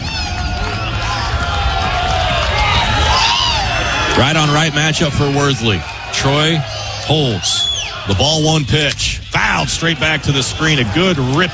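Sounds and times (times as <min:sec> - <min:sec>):
stadium crowd cheering: 0:00.0 - 0:11.5
speech: 0:04.2 - 0:11.5.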